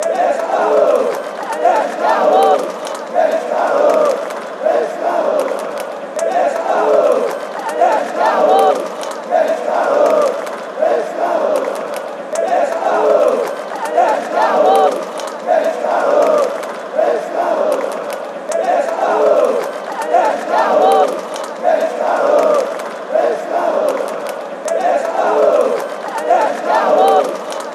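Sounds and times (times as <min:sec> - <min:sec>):
football fans chanting: 0:00.0 - 0:27.7.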